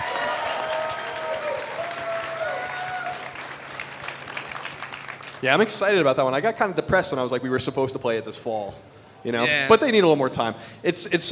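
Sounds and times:
audience applause: 0:00.0 - 0:05.6
speech: 0:05.4 - 0:11.2.

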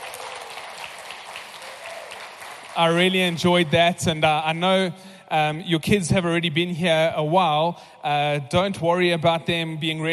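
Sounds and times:
audience applause: 0:00.0 - 0:03.8
speech: 0:02.8 - 0:10.1.

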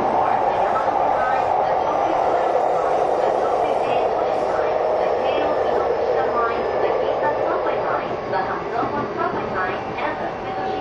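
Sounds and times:
Sotetsu 12000 series train running between Ebina and Shinjuku: 0:00.0 - 0:10.8.

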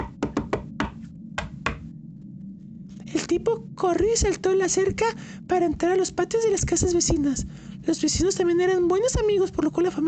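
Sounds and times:
knocking on glass and doors: 0:00.0 - 0:01.8
speech: 0:03.3 - 0:10.0.

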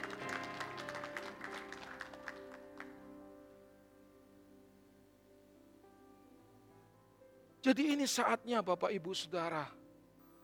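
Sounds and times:
audience applause: 0:00.0 - 0:03.0
speech: 0:07.6 - 0:09.8.

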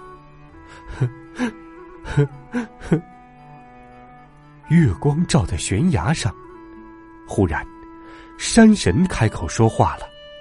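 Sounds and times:
younger brother sobbing: 0:00.7 - 0:03.2
speech: 0:01.0 - 0:01.6, 0:02.2 - 0:03.1, 0:04.7 - 0:06.4, 0:07.3 - 0:07.7, 0:08.4 - 0:10.1.

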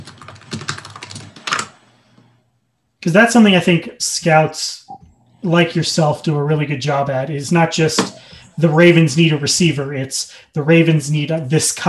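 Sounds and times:
typing on a computer keyboard: 0:00.0 - 0:01.8
speech: 0:03.0 - 0:11.8.

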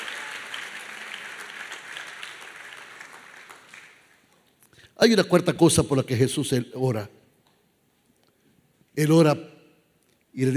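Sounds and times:
audience applauding loudly: 0:00.0 - 0:04.5
speech: 0:05.0 - 0:07.2, 0:09.0 - 0:09.5, 0:10.4 - 0:10.5.

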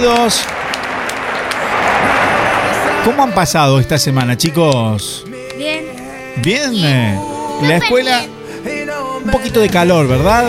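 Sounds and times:
speech: 0:00.0 - 0:00.6, 0:03.0 - 0:05.8, 0:06.4 - 0:08.3, 0:09.2 - 0:10.4
audience clapping: 0:00.0 - 0:06.6.

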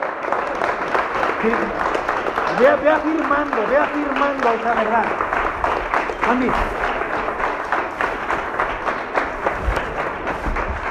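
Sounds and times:
crowd applause: 0:00.0 - 0:10.8
speech: 0:01.4 - 0:01.9, 0:02.6 - 0:05.4, 0:06.3 - 0:06.8.

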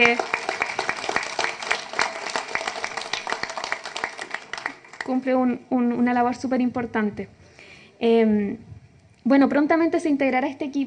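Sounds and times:
audience applause: 0:00.0 - 0:05.1
speech: 0:05.1 - 0:07.4, 0:08.0 - 0:10.8.

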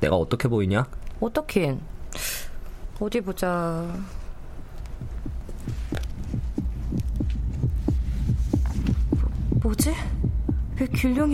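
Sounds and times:
speech: 0:00.0 - 0:02.4, 0:03.0 - 0:04.2, 0:09.6 - 0:10.2, 0:10.8 - 0:11.3
low hum: 0:03.8 - 0:11.3
pounding heartbeat sound effect in an audio drama: 0:04.9 - 0:11.3.

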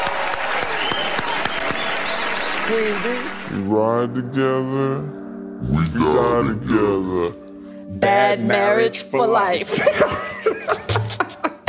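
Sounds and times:
crowd applauding at an awards ceremony: 0:00.0 - 0:03.7
speech: 0:02.7 - 0:11.0
laughter: 0:09.6 - 0:11.6.

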